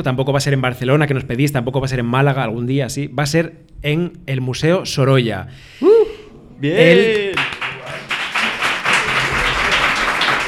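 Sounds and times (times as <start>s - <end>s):
speech: 0.0s - 5.9s, 6.6s - 7.5s
crowd applause: 7.0s - 10.4s.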